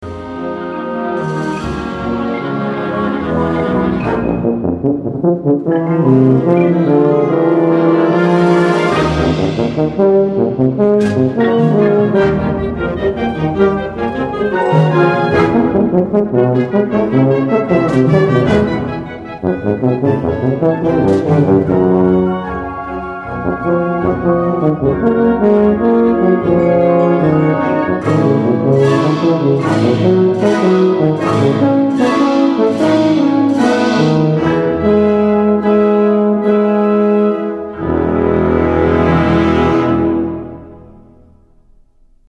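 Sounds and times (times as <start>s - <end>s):
tuba: 0.0s - 42.2s.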